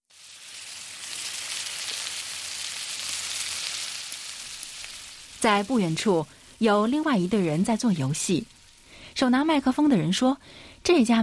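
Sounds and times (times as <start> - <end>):
meat sizzling on a grill pan: 0.0 - 8.9
speech: 5.4 - 8.6, 9.2 - 11.2.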